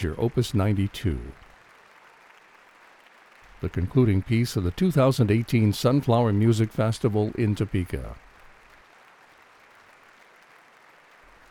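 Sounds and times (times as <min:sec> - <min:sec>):
speech: 0:00.0 - 0:01.4, 0:03.6 - 0:08.3
concert hall audience applause after symphony: 0:00.0 - 0:11.5.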